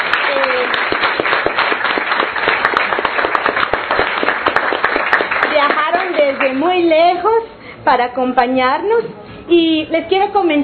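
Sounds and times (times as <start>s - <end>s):
audience applause: 0.0s - 6.8s
speech: 6.5s - 10.6s.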